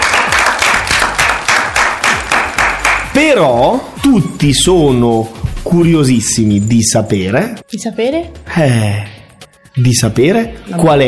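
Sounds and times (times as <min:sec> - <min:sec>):
audience applause: 0:00.0 - 0:03.0
speech: 0:03.2 - 0:09.1, 0:09.8 - 0:11.0.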